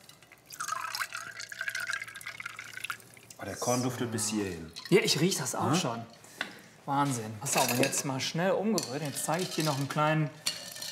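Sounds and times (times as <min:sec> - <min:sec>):
soda being poured into a glass: 0:00.0 - 0:03.4
speech: 0:03.4 - 0:06.2, 0:06.9 - 0:10.4.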